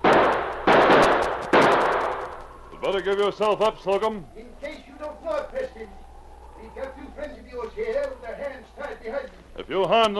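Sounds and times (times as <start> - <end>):
gunshots from a sergeant returning fire in a radio drama: 0.0 - 2.5
speech: 2.9 - 6.0, 6.6 - 10.1.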